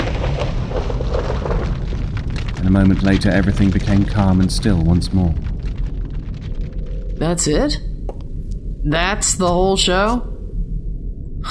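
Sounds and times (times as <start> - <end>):
mighty crack of thunder: 0.0 - 8.8
speech: 2.7 - 5.5, 7.2 - 7.9, 8.8 - 10.3.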